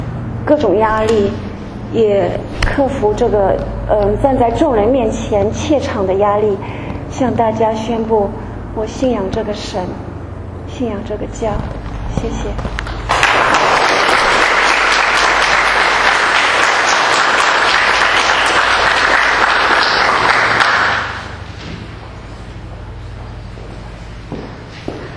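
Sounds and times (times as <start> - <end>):
speech: 0.5 - 10.1, 10.7 - 12.9
warm audience applause: 12.8 - 21.4.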